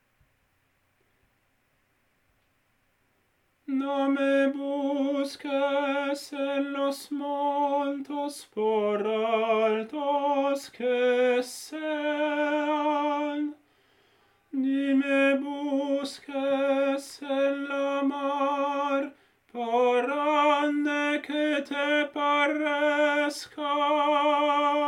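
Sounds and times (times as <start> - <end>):
tenor singing: 3.7 - 13.6, 14.5 - 24.8.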